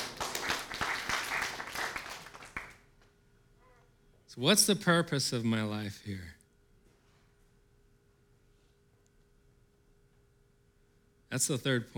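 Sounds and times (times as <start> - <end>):
audience applause: 0.0 - 2.8
speech: 4.4 - 6.4, 11.4 - 11.9.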